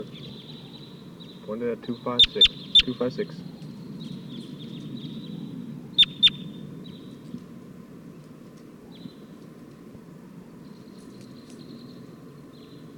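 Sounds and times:
wild bird flock calling: 0.0s - 6.6s
speech: 1.5s - 3.6s.

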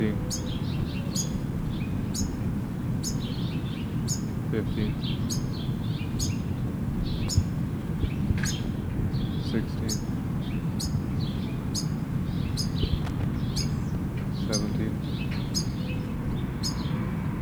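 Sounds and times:
finches chirping: 0.0s - 17.4s
speech: 4.5s - 5.4s.

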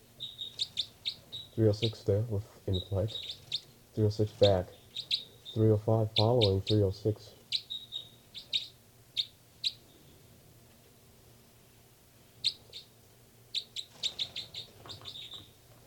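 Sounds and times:
low steady hum: 0.0s - 15.8s
high-pitched bird calls: 0.2s - 1.9s, 2.7s - 10.2s, 12.4s - 12.9s, 13.5s - 15.6s
speech: 1.6s - 3.4s, 4.0s - 7.4s.

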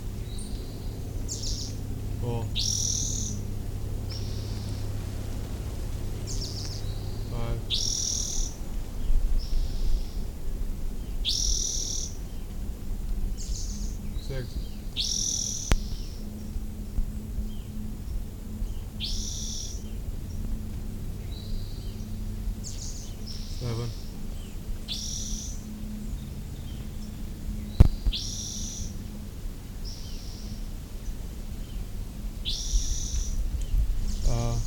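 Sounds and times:
low steady hum: 0.0s - 34.6s
bird giving repeated chip calls: 0.1s - 10.4s, 11.0s - 12.6s, 13.4s - 16.4s, 18.7s - 20.4s, 21.2s - 29.0s, 32.4s - 34.6s.

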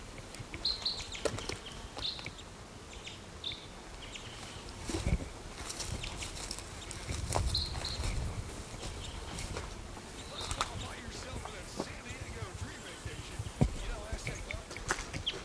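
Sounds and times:
male bird calling from a tree: 0.6s - 4.7s, 6.0s - 15.4s.

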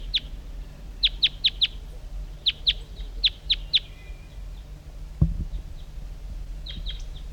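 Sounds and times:
wild birds calling: 0.0s - 7.3s.

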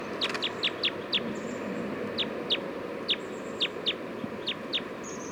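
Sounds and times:
wild bird giving short high-pitched chirps: 0.2s - 5.3s.

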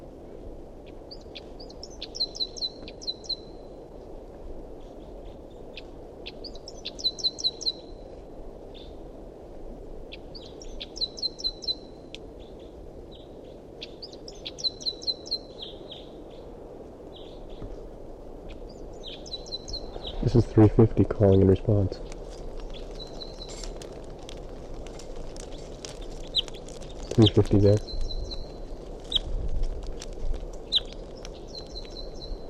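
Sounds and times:
wild bird song: 0.8s - 3.8s, 4.8s - 8.0s, 8.7s - 9.0s, 10.1s - 16.5s, 17.1s - 17.8s, 18.5s - 23.7s, 25.5s - 29.3s, 30.6s - 32.4s
speech: 20.4s - 22.1s, 27.2s - 28.0s.

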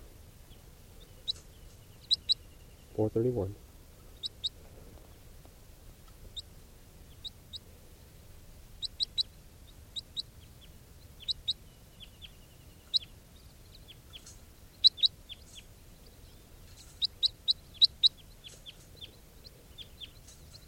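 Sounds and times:
captive juvenile crossbill chip calls: 1.1s - 4.6s, 8.8s - 20.6s
speech: 3.0s - 3.6s.

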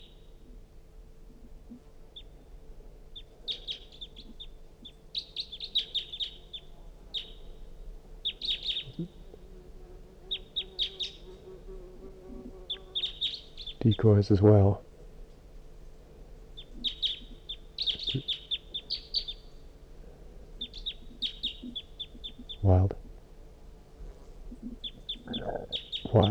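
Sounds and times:
wild bird calling: 3.2s - 9.5s, 10.1s - 14.8s, 16.5s - 23.2s, 24.0s - 26.2s
speech: 13.9s - 14.9s.

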